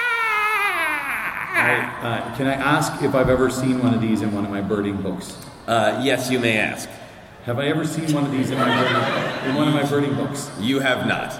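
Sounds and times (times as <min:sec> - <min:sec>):
piercing squeaking creature cry voiced by a person: 0:00.0 - 0:02.0
speech: 0:01.6 - 0:11.3
laughter: 0:08.1 - 0:10.0.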